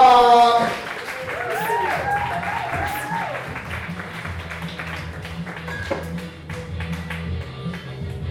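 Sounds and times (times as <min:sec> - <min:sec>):
crowd whooping and cheering: 0:00.0 - 0:04.2
audience clapping: 0:00.4 - 0:08.2.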